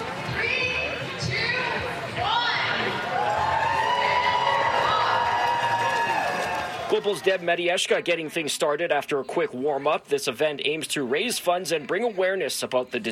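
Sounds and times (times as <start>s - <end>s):
large outdoor crowd cheering and calling out: 0.0s - 8.0s
speech: 7.0s - 13.1s.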